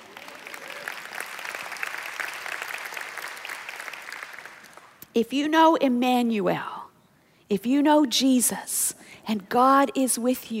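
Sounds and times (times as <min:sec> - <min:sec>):
audience applause: 0:00.0 - 0:05.0
speech: 0:05.2 - 0:06.7, 0:07.5 - 0:10.5.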